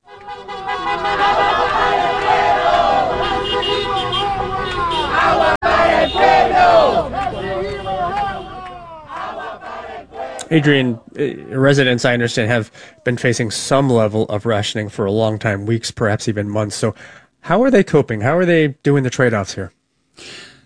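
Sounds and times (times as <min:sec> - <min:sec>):
car horns honking: 0:00.0 - 0:10.5
protest crowd shouting and chanting: 0:00.1 - 0:11.4
speech: 0:10.5 - 0:20.5.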